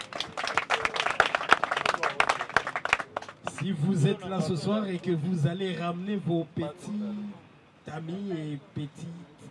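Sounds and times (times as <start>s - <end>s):
sparse applause from about four people in an audience: 0.0s - 3.7s
speech: 3.6s - 9.3s.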